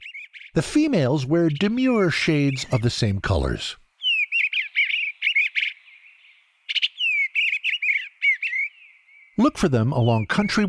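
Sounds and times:
Eastern Bluebird singing: 0.0 - 10.6
speech: 0.5 - 3.8, 9.4 - 10.6.

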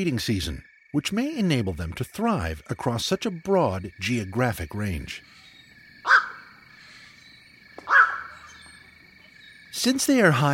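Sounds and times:
speech: 0.0 - 5.4, 9.7 - 10.5
black-crowned night heron squawks: 5.2 - 9.4.

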